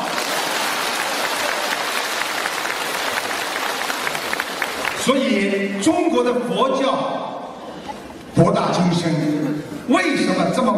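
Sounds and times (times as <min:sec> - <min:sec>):
audience applause: 0:00.0 - 0:05.5
speech: 0:05.0 - 0:07.3, 0:08.4 - 0:10.7.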